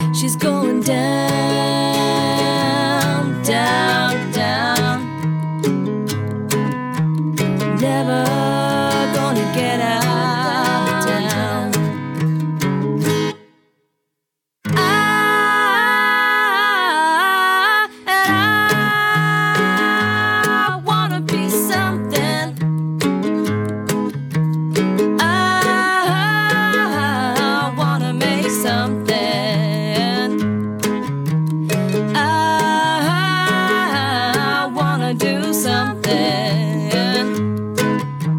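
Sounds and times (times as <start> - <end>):
acoustic music: 0.0 - 13.9, 14.6 - 38.3.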